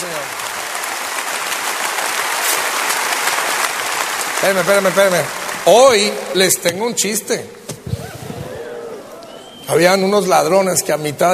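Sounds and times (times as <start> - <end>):
audience applause: 0.0 - 6.7, 7.9 - 10.2
speech: 4.4 - 7.6, 9.7 - 11.3.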